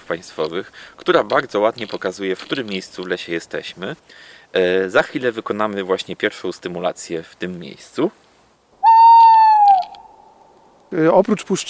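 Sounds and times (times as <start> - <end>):
speech: 0.1 - 8.2, 10.9 - 11.6
Tawny Owl hoot: 8.8 - 10.7.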